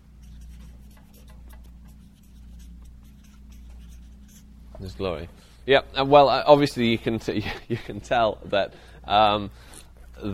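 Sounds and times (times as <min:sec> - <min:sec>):
handwriting on paper: 0:00.2 - 0:04.5
speech: 0:04.8 - 0:10.3.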